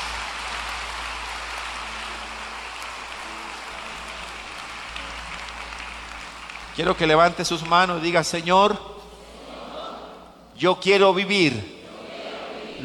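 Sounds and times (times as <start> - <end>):
audience applause: 0.0 - 8.8
speech: 6.8 - 8.9, 10.6 - 11.8.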